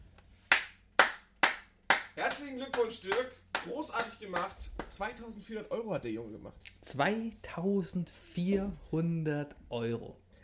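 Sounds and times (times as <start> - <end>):
single person clapping hands: 0.5 - 5.2
speech: 2.2 - 10.4.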